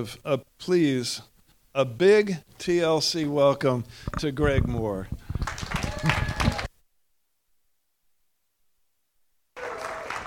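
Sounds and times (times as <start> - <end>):
speech: 0.0 - 6.2
audience applause: 5.4 - 6.7, 9.6 - 10.2.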